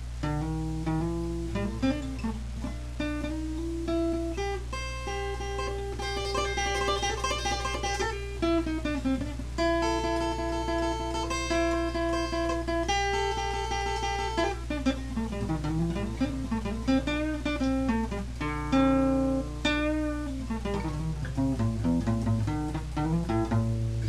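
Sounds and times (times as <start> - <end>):
blues jam: 0.1 - 24.0.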